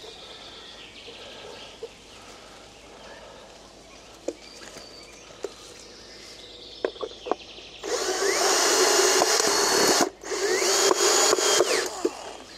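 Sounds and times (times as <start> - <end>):
sharp clicks: 6.8 - 12.4
power drill driving in a screw: 7.8 - 12.5.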